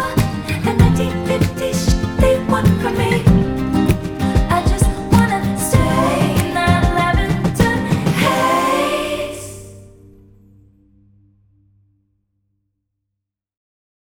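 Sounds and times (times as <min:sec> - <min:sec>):
acoustic music: 0:00.0 - 0:10.3.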